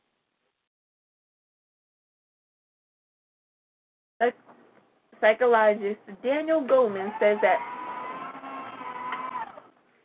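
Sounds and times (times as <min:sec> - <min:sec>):
speech: 0:04.2 - 0:04.4, 0:05.2 - 0:07.8
paper shredder running: 0:06.9 - 0:09.8.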